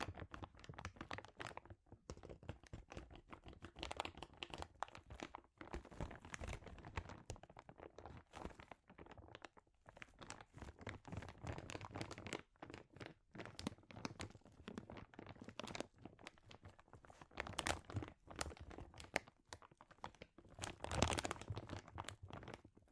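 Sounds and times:
plastic or foil crinkling: 0.0 - 22.9.

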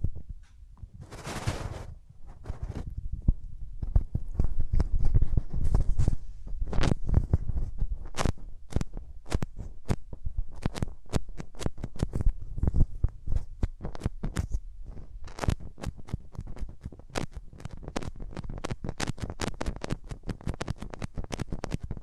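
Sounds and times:
hands rubbing over the microphone ears: 1.0 - 22.0.

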